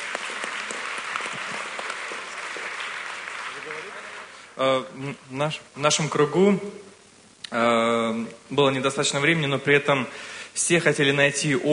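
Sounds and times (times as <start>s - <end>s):
group applauding at a discussion meeting: 0.0s - 4.6s
speech: 4.6s - 6.8s, 7.5s - 11.7s.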